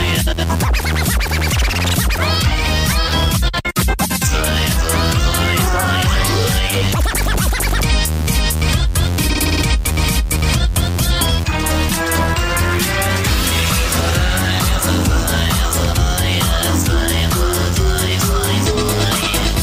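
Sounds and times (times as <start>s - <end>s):
funny cartoon ringtone: 0.1s - 19.5s.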